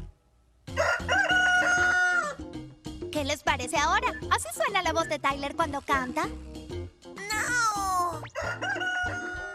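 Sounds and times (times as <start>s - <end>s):
rooster crowing: 0.7s - 2.4s, 8.3s - 9.5s
speech: 3.2s - 6.6s.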